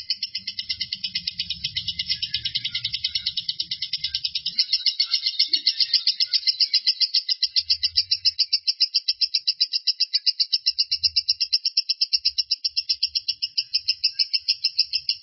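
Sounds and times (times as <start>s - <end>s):
lovebird singing a long high-pitched trill: 0.0s - 15.2s.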